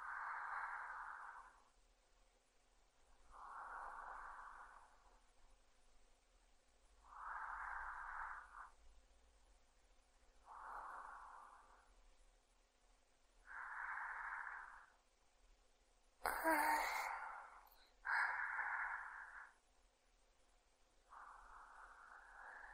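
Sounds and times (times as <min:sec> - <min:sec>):
sleeping breath: 0:00.0 - 0:01.8, 0:03.2 - 0:05.2, 0:07.0 - 0:08.8, 0:10.4 - 0:12.0, 0:13.4 - 0:15.0, 0:16.2 - 0:19.6, 0:21.0 - 0:22.7.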